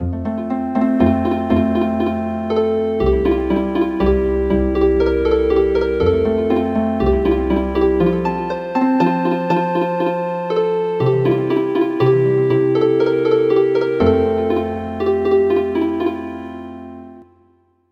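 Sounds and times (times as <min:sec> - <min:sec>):
healing harp: 0:00.0 - 0:17.2.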